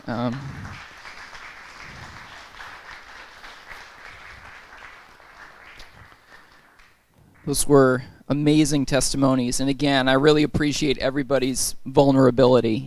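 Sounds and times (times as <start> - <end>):
audience applause: 0.0 - 7.6
speech: 0.1 - 0.6, 7.4 - 12.8.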